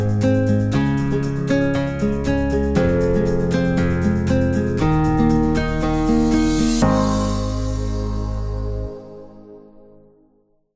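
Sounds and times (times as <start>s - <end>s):
acoustic guitar: 0.0s - 9.5s.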